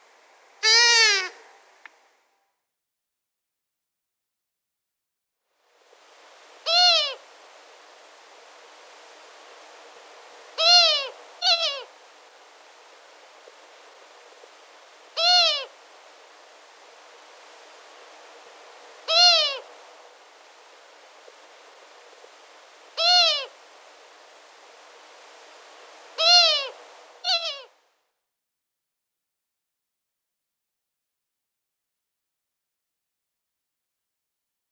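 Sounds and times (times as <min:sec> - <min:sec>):
Long-eared owl giving low short hoots: 0:00.6 - 0:01.5, 0:06.6 - 0:07.3, 0:10.4 - 0:12.0, 0:15.0 - 0:15.9, 0:18.9 - 0:19.8, 0:22.8 - 0:23.8, 0:26.0 - 0:27.8.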